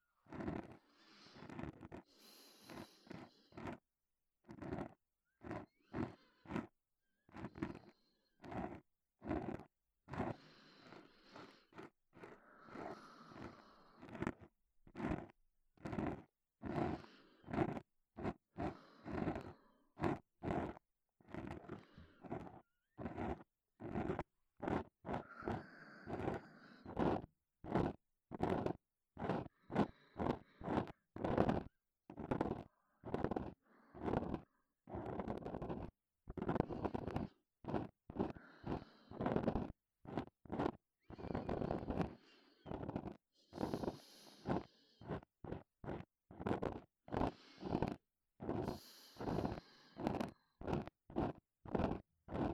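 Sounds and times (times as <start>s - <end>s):
breathing in the left ear: 0.3s - 3.8s, 4.6s - 20.8s, 21.4s - 24.2s, 24.8s - 31.7s, 32.5s - 52.5s
ear cleaning sounds in the left ear: 11.4s - 52.5s.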